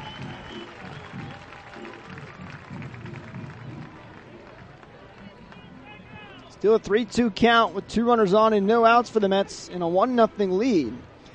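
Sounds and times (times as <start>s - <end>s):
crowd clapping at a baseball game: 0.0s - 6.0s
speech: 6.6s - 11.1s.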